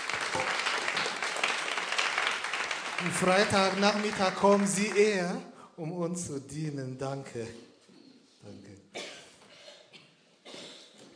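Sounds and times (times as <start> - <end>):
audience applause for the worship team at a church service: 0.0 - 5.3
speech: 3.0 - 7.7.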